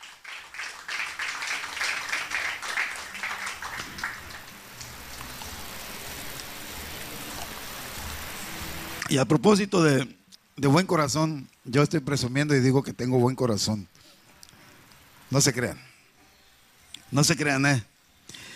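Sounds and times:
audience applauding: 0.0s - 6.7s
soft steady room hiss: 0.0s - 18.5s
speech: 9.1s - 14.0s, 15.3s - 15.9s, 17.1s - 17.9s.

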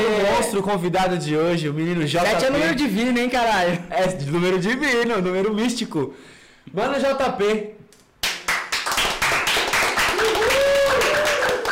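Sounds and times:
speech: 0.5s - 7.8s
hand clapping: 8.0s - 11.7s.

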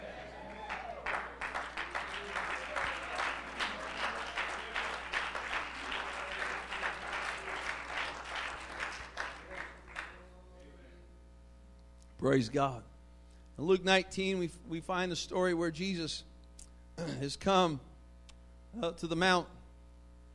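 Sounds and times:
church congregation clapping in praise: 0.0s - 10.4s
low electrical hum: 0.0s - 20.3s
speech: 12.2s - 12.9s, 13.6s - 16.3s, 17.0s - 17.9s, 18.8s - 19.6s.

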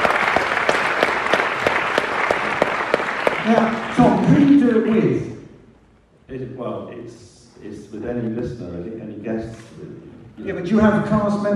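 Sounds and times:
audience applause: 0.0s - 4.7s
speech: 6.8s - 11.5s.

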